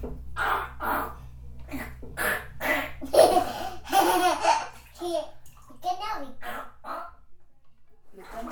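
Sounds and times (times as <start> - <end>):
child's voice imitating a dinosaur with raspy screeching cries: 0.4 - 3.0, 6.1 - 7.3
laughter: 3.0 - 4.7.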